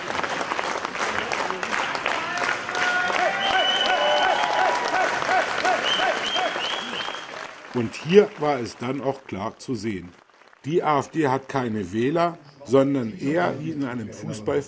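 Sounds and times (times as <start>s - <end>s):
crowd cheering loudly: 0.0s - 11.3s
speech: 7.8s - 14.6s.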